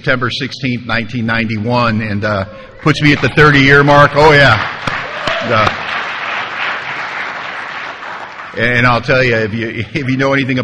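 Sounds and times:
speech: 0.0s - 5.8s, 8.6s - 10.6s
audience applause: 3.0s - 8.9s.

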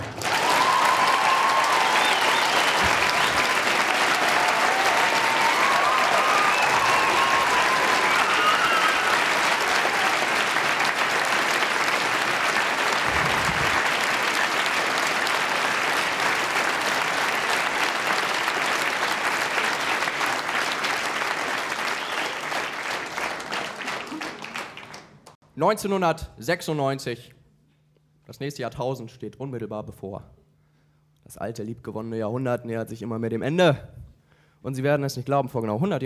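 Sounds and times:
concert audience applause: 0.0s - 25.4s
faint whistles and cheers: 0.2s - 11.0s, 21.5s - 22.9s
speech: 25.6s - 27.4s, 28.3s - 30.2s, 31.4s - 33.9s, 34.6s - 36.0s.

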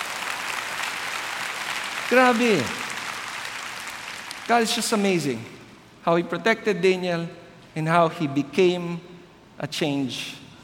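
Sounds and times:
audience applause: 0.0s - 5.0s
speech: 2.1s - 2.8s, 4.5s - 10.4s.

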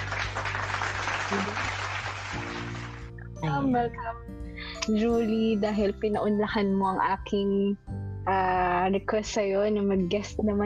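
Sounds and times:
applause: 0.0s - 3.1s
speech: 1.3s - 1.8s, 3.4s - 10.6s.

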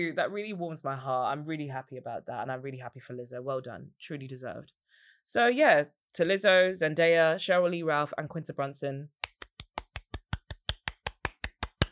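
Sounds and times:
speech: 0.0s - 9.2s
one person clapping hands: 9.2s - 11.8s.

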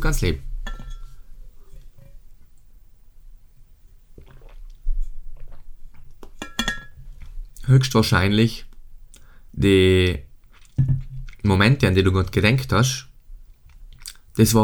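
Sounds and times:
speech: 0.0s - 0.5s, 7.7s - 8.7s, 9.6s - 13.1s, 14.4s - 14.6s
glass clinking: 0.6s - 1.2s, 6.4s - 7.0s
sipping and swallowing water: 4.1s - 6.3s, 9.1s - 9.4s, 10.4s - 11.5s, 13.7s - 14.4s.

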